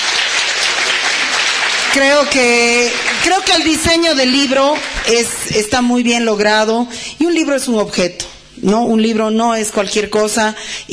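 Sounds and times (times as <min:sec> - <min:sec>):
audience applause: 0:00.0 - 0:05.2
speech: 0:02.0 - 0:10.9.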